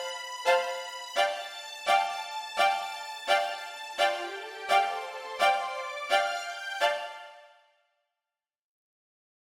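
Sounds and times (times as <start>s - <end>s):
strings with digital reverb: 0.0s - 7.6s.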